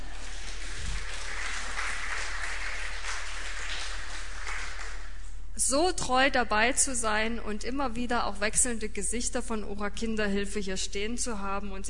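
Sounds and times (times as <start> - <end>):
audience applause: 0.0 - 5.2
speech: 5.6 - 11.8.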